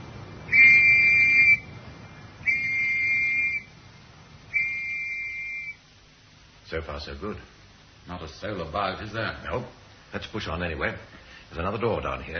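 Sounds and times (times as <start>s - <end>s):
whistle signal: 0.5s - 1.7s, 2.4s - 3.8s, 4.5s - 5.8s
speech: 6.7s - 12.3s.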